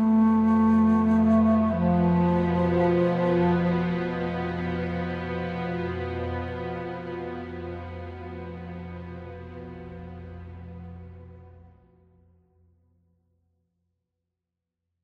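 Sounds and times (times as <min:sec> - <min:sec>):
flute playing: 0:00.0 - 0:11.1.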